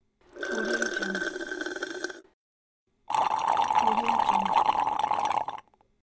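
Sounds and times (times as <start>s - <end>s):
straw slurping: 0.3s - 2.3s, 3.1s - 5.7s.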